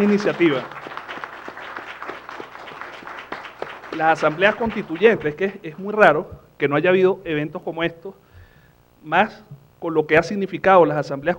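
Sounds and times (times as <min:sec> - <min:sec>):
speech: 0:00.0 - 0:00.8, 0:04.0 - 0:08.2, 0:09.0 - 0:11.3
faint audience applause at an international congress on constituent assemblies: 0:00.0 - 0:05.9.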